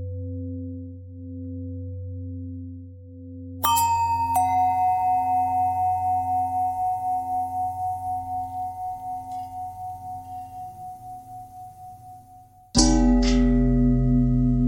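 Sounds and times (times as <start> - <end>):
long bells ringing: 3.6 - 14.6.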